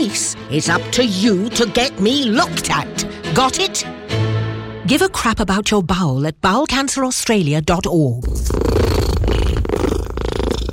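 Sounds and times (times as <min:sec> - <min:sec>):
speech: 0:00.0 - 0:04.0, 0:04.9 - 0:09.3
contented rescue cat purring: 0:08.2 - 0:10.7.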